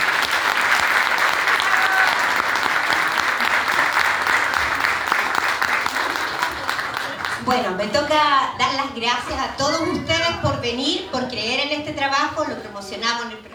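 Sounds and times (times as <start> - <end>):
audience applause: 0.0 - 7.9
speech: 7.5 - 13.5.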